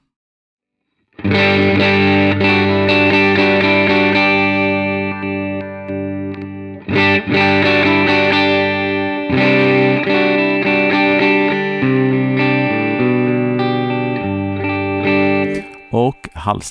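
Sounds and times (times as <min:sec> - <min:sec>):
electric guitar: 0:01.1 - 0:15.9
speech: 0:16.5 - 0:16.6.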